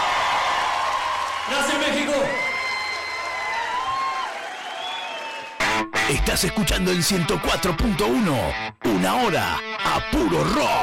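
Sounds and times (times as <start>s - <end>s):
rock concert crowd in Mexico applauding: 0.0s - 5.9s
crowd whistles and whoops: 2.2s - 5.6s
speech: 6.1s - 10.8s.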